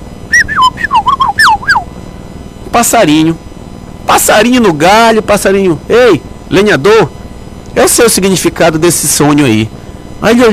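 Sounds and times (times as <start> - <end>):
whistle: 0.3 - 1.8
speech: 2.8 - 3.5, 4.1 - 7.2, 7.8 - 10.5.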